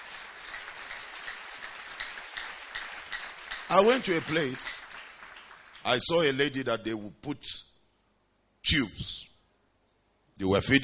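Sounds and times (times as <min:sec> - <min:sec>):
audience clapping: 0:00.0 - 0:06.4
speech: 0:03.7 - 0:04.8, 0:05.8 - 0:07.7, 0:08.6 - 0:09.3, 0:10.4 - 0:10.8.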